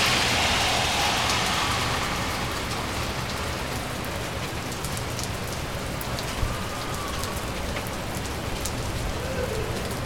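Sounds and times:
soft low rumble: 0:00.0 - 0:05.0
steady rain in East NY: 0:00.0 - 0:10.0.

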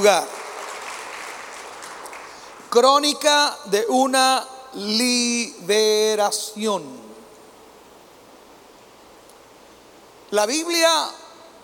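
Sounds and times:
speech: 0:00.0 - 0:00.4, 0:02.7 - 0:07.1, 0:10.3 - 0:11.2
audience applause: 0:00.0 - 0:02.7.

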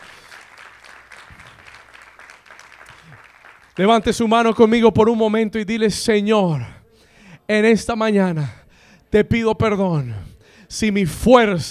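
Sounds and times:
strong crowd applause: 0:00.0 - 0:04.0
speech: 0:03.8 - 0:06.8, 0:07.5 - 0:11.6.

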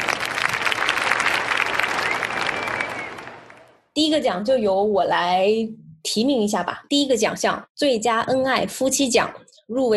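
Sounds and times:
audience applause: 0:00.0 - 0:03.8
speech: 0:04.0 - 0:09.9.

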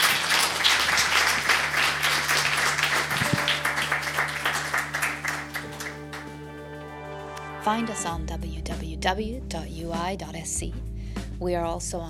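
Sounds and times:
audience applause for panelists: 0:00.0 - 0:06.6
speech: 0:07.7 - 0:12.0.

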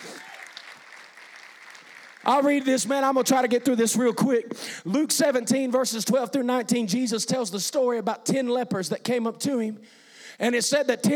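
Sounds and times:
audience hand clapping: 0:00.0 - 0:04.2
speech: 0:02.2 - 0:11.1.

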